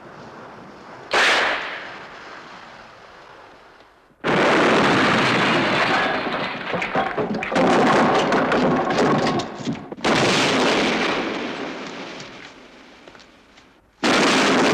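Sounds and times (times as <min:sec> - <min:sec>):
grenade explosion: 0:01.1 - 0:02.1, 0:04.2 - 0:12.2, 0:14.0 - 0:14.7.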